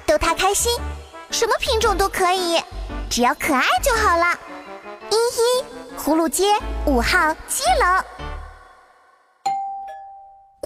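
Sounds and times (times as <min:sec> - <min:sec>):
speech: 0:00.4 - 0:04.4, 0:05.1 - 0:08.2
doorbell ringing: 0:09.5 - 0:10.6.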